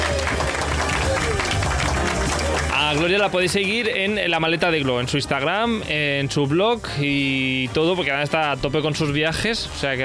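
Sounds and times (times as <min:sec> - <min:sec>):
applause: 0:00.0 - 0:04.0
speech: 0:02.9 - 0:10.0.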